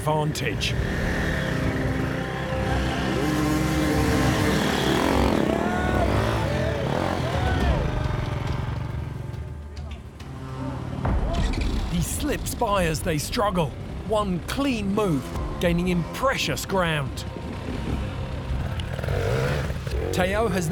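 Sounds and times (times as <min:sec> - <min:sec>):
speech: 0:00.0 - 0:01.2, 0:12.3 - 0:17.4, 0:20.2 - 0:20.7
dirt bike motorcycle engine struggling through the woods during a race: 0:00.6 - 0:09.6, 0:10.2 - 0:20.7.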